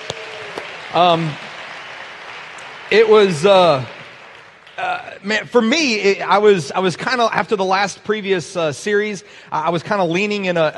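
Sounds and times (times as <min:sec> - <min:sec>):
crowd clapping: 0:00.0 - 0:06.4
speech: 0:00.9 - 0:01.4, 0:02.9 - 0:04.0, 0:04.8 - 0:10.7.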